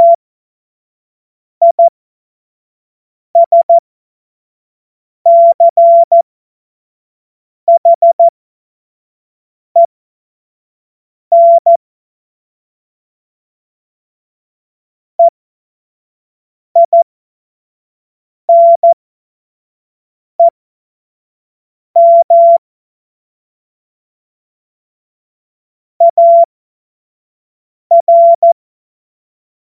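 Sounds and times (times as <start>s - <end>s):
CW Morse code beeps: 1.6s - 1.9s, 3.4s - 3.8s, 5.3s - 6.2s, 7.7s - 8.3s, 11.3s - 11.8s, 16.8s - 17.0s, 18.5s - 19.0s, 22.0s - 22.6s, 26.0s - 26.5s, 27.9s - 28.6s.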